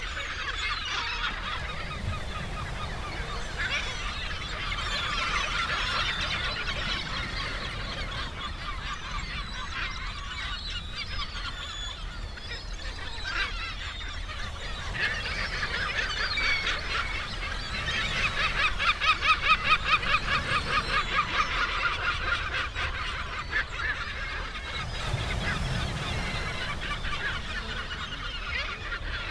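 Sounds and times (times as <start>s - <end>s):
sea birds calling on a beach: 0.0s - 29.3s.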